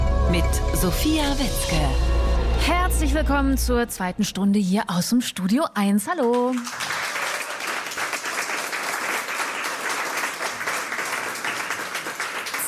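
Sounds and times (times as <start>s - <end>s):
speech: 0.3s - 6.8s
audience applause: 6.2s - 12.6s.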